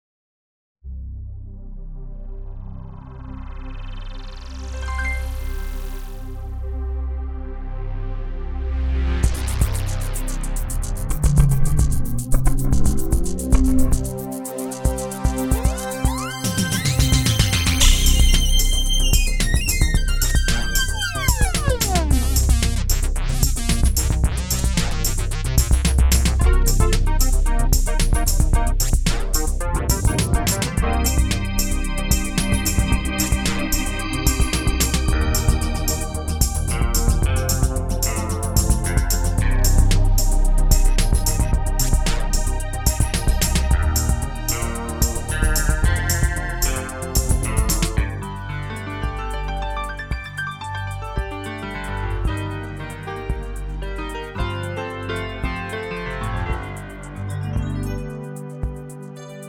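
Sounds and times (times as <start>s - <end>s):
techno music: 3.4s - 59.2s.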